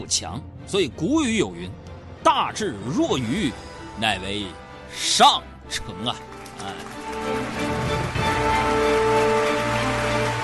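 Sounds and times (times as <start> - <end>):
speech: 0.0 - 7.7
audience applause: 6.0 - 10.4.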